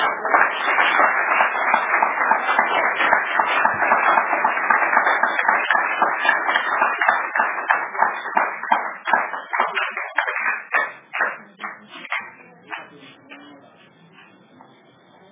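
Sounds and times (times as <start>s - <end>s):
audience applause: 0.0s - 12.9s.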